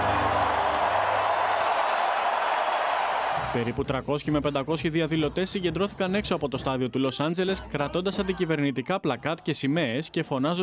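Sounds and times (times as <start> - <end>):
stadium crowd applauding: 0.0 - 3.8
speech: 3.6 - 10.6.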